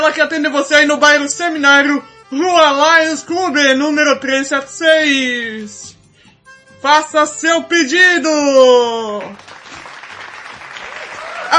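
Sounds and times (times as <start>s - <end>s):
speech: 0.1s - 6.0s, 6.8s - 9.5s
applause: 9.2s - 11.5s.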